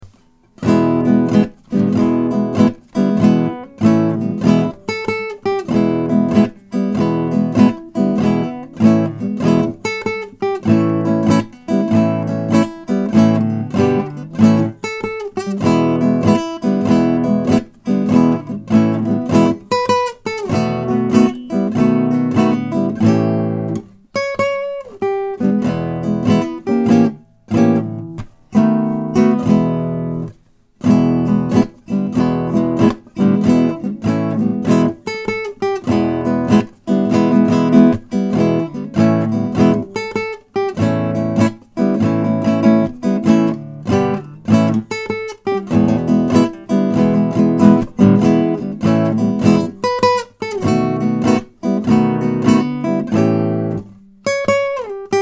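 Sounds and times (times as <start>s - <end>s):
blues music: 0.0s - 55.2s.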